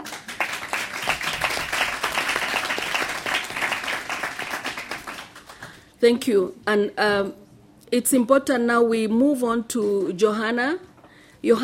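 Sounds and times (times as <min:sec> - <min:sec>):
audience clapping: 0:00.0 - 0:05.9
speech: 0:06.0 - 0:11.6.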